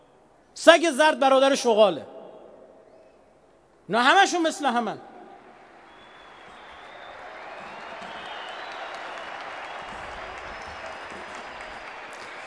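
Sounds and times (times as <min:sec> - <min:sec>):
speech: 0:00.6 - 0:02.1, 0:03.9 - 0:05.1
audience applause: 0:05.9 - 0:12.4.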